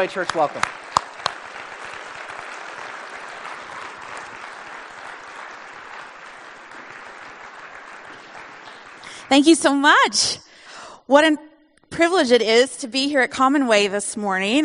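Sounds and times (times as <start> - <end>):
speech: 0.0 - 0.9, 9.3 - 10.5, 11.1 - 14.6
church audience applause at Common Way Church: 0.0 - 10.1.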